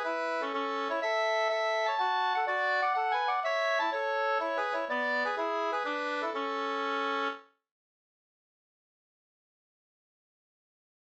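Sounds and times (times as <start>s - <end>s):
mazurka music: 0.0s - 7.4s.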